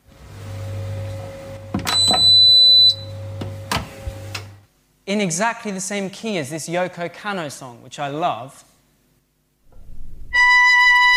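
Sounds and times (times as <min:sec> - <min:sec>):
dishwasher hum: 0:00.0 - 0:05.0
dishwasher beeping: 0:00.6 - 0:04.5
speech: 0:02.1 - 0:02.5, 0:05.1 - 0:08.7.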